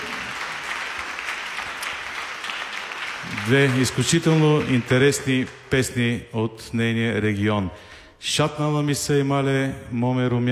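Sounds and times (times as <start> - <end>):
audience applause greeting a folk singer from Breznitsa: 0.0 - 5.7
speech: 3.4 - 10.5.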